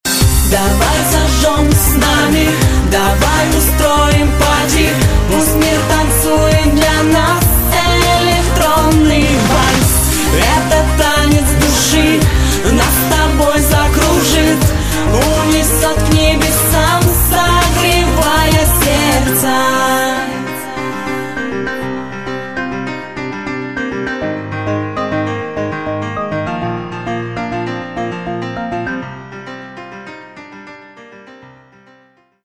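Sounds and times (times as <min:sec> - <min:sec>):
electronic waltz: 0:00.2 - 0:29.8.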